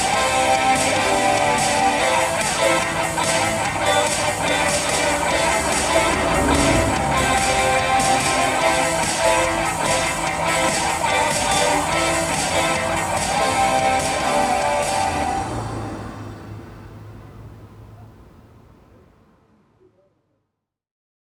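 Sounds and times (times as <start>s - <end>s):
laptop music: 0.0s - 16.7s.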